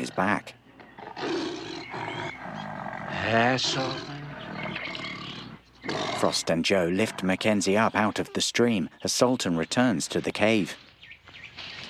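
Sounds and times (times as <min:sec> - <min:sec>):
speech: 0:00.0 - 0:00.6, 0:03.1 - 0:04.1, 0:05.8 - 0:10.8
big cat roaring and snarling: 0:01.0 - 0:07.4.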